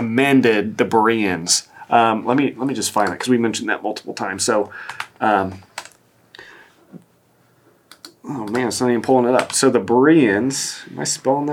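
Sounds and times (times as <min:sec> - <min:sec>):
speech: 0:00.1 - 0:05.7, 0:08.2 - 0:11.5
typing on a computer keyboard: 0:04.7 - 0:05.1, 0:05.8 - 0:06.0, 0:07.9 - 0:09.6.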